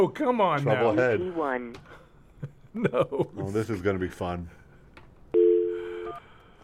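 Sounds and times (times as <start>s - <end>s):
speech: 0.0s - 2.0s, 2.8s - 4.6s
telephone dialing tone: 5.4s - 6.2s.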